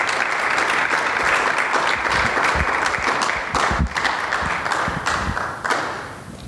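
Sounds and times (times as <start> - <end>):
audience applause: 0.0 - 6.3.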